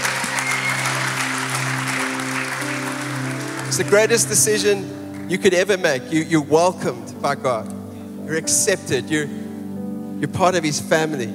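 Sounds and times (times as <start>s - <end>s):
congregation applauding in a church: 0.0s - 5.6s
sustained low musical tones: 0.0s - 11.3s
speech: 3.7s - 9.4s, 10.2s - 11.3s.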